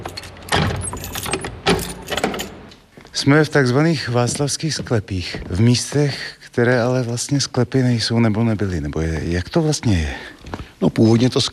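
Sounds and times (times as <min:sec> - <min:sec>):
keys unlocking a door: 0:00.0 - 0:02.9
speech: 0:03.2 - 0:11.5.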